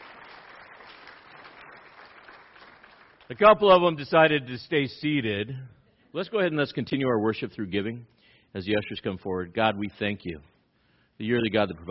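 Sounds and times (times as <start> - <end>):
audience applause: 0.0 - 3.3
speech: 3.3 - 10.5, 11.2 - 11.8.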